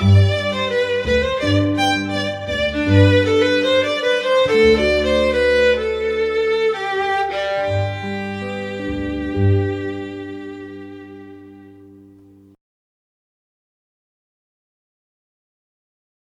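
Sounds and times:
string trio playing a rondo: 0:00.0 - 0:12.6.

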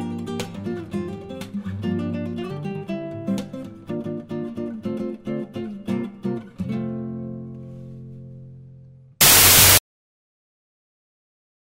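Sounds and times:
improvised Spanish Brazilian classical guitar playing: 0:00.0 - 0:08.5.

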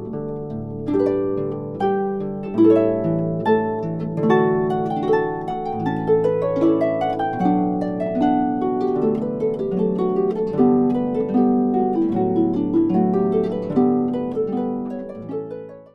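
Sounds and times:
solo harp playing: 0:00.0 - 0:15.9.

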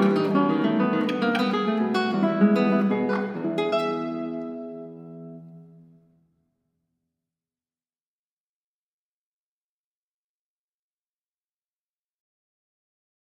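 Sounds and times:
classical guitar playing: 0:00.0 - 0:06.4.

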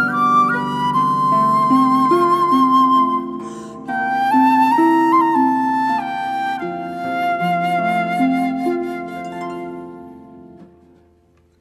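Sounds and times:
flute: 0:00.0 - 0:11.0
harp: 0:00.0 - 0:11.5.

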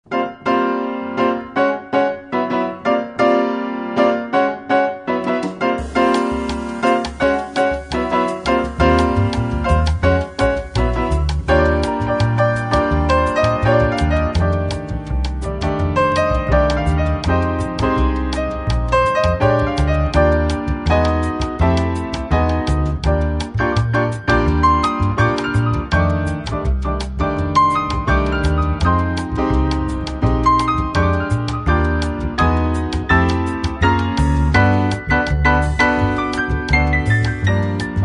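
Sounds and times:
piano trio playing: 0:00.0 - 0:38.0.

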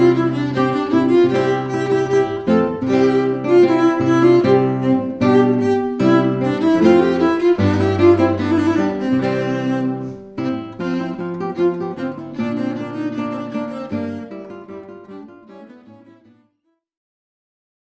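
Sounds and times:
cello: 0:00.0 - 0:16.5
classical guitar: 0:00.0 - 0:16.7.

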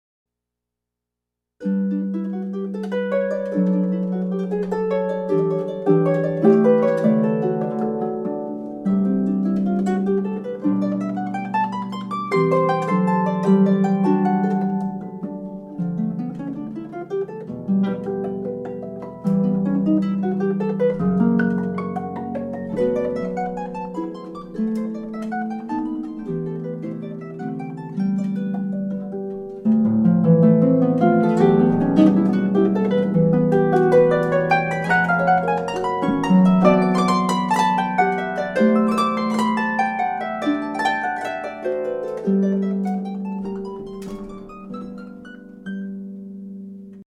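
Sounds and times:
harp playing scherzando: 0:01.6 - 0:47.0.

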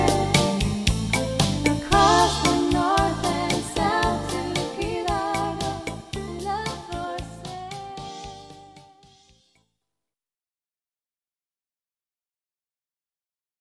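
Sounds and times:
jazz band playing: 0:00.0 - 0:06.8
female vocals: 0:00.0 - 0:09.0.

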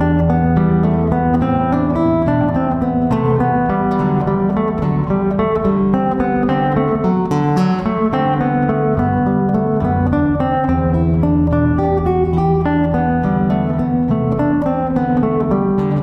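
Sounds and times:
classical guitar playing classical music: 0:00.0 - 0:16.0.

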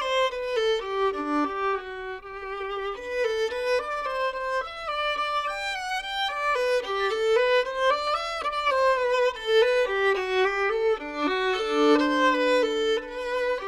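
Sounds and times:
classical solo violin piece: 0:00.0 - 0:13.6.

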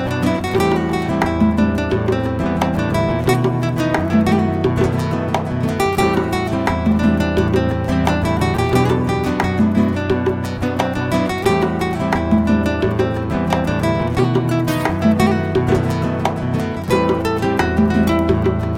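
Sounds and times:
flamenco band playing rumba: 0:00.0 - 0:18.7.

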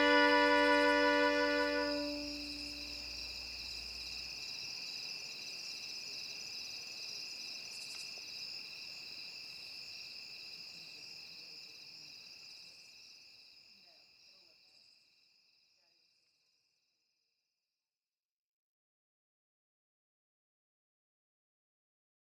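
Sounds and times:
violin solo: 0:00.0 - 0:03.0.

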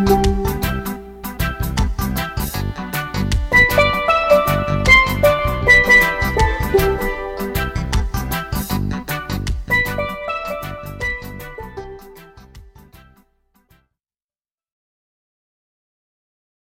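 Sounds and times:
swing music: 0:00.0 - 0:13.2.

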